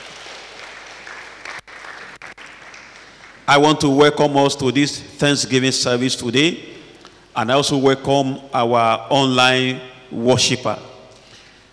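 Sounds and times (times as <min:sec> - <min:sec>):
congregation applauding at a church Thanksgiving service: 0:00.0 - 0:03.8
speech: 0:03.5 - 0:06.7, 0:07.4 - 0:10.9.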